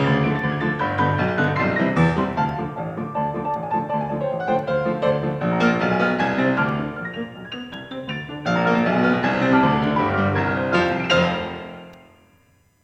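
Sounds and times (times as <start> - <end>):
ragtime music: 0.0 - 12.0.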